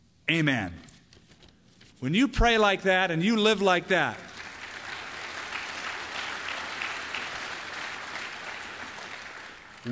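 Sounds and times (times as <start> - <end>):
speech: 0.3 - 0.9, 2.0 - 4.3
congregation applauding in a church service: 3.6 - 9.9.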